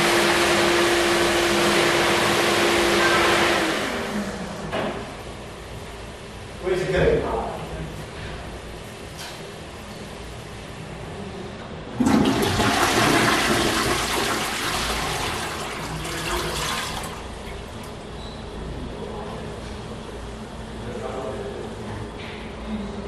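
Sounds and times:
hand dryers operating in a public toilet at a mall: 0:00.0 - 0:04.7, 0:12.0 - 0:18.1
toilet in a public toilet at a mall: 0:00.0 - 0:04.7, 0:12.0 - 0:18.1
people talking in a public toilet at a mall: 0:06.6 - 0:07.9, 0:20.8 - 0:22.1.

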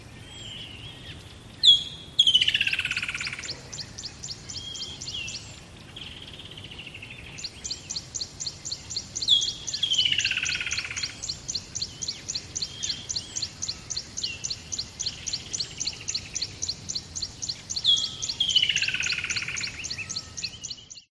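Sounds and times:
rapid high bird chirps: 0:01.6 - 0:21.1.

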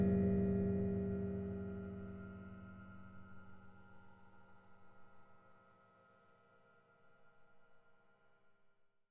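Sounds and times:
reversed metal droning clangs: 0:00.0 - 0:03.0.

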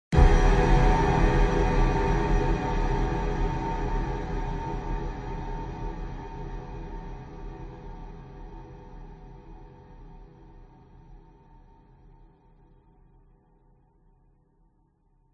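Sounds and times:
horror hit piano stab: 0:00.1 - 0:08.0
airy boom: 0:00.2 - 0:06.0.

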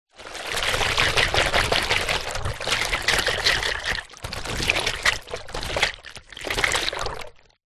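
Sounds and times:
water sloshing in full rubber hot water bottle shaken hard: 0:00.1 - 0:07.6.

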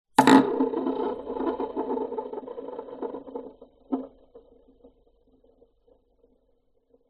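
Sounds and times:
plastic toy spinning top on wood: 0:00.2 - 0:05.1.

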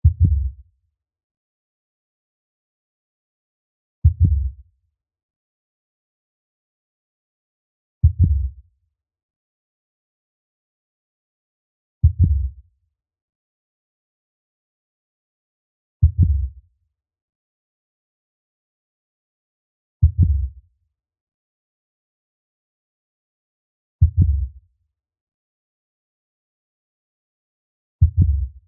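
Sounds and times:
blue whale heartbeat: 0:00.0 - 0:00.5, 0:04.0 - 0:04.5, 0:08.0 - 0:08.5, 0:12.0 - 0:12.5, 0:16.0 - 0:16.5, 0:20.0 - 0:20.5, 0:24.0 - 0:24.6, 0:28.0 - 0:28.6.

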